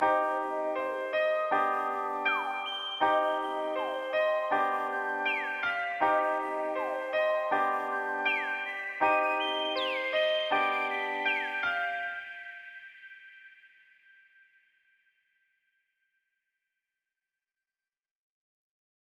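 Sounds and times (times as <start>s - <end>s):
music at 160 BPM in C minor: 0.0s - 12.8s.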